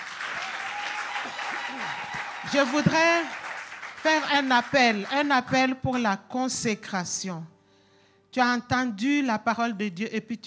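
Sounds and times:
crowd acclaiming the Lord: 0.0 - 5.3
speech: 1.2 - 3.4, 4.0 - 7.5, 8.4 - 10.4.

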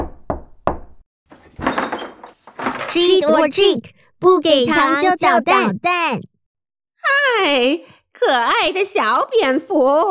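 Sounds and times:
knocking on a door: 0.0 - 1.0
speech: 2.9 - 6.3, 7.3 - 10.1.

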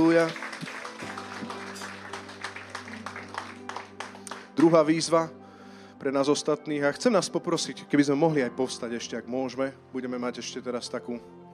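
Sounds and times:
audience applause: 0.0 - 5.0
speech: 0.1 - 0.4, 4.6 - 5.4, 6.0 - 11.4.

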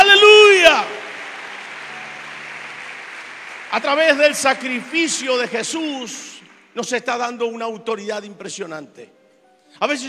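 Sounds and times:
audience applause: 0.0 - 6.7
speech: 3.8 - 10.0.

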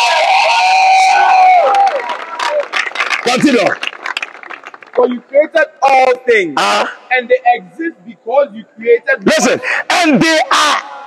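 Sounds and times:
audience cheering: 0.0 - 4.3
scattered sharp hand claps: 1.7 - 5.1
speech: 3.3 - 3.9, 5.0 - 11.0.

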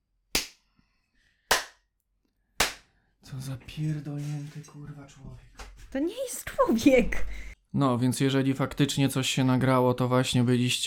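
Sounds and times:
sharp hand claps to sync recording: 0.4 - 0.6, 1.5 - 1.8, 2.6 - 2.9
speech: 3.2 - 10.8.

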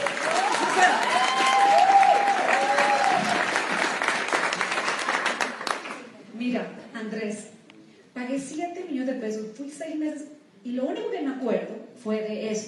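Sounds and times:
audience applause: 0.0 - 6.1
speech: 9.2 - 12.6.

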